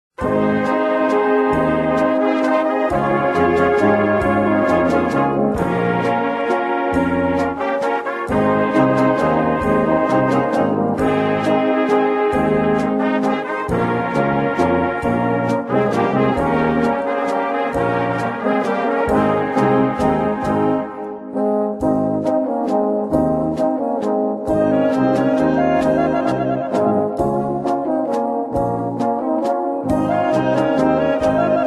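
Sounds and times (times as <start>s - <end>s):
fanfare: 0.2s - 31.6s.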